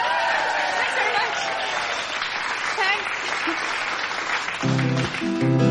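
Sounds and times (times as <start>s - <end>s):
whoops and cheers: 0.0s - 2.2s
crowd applause: 0.0s - 5.6s.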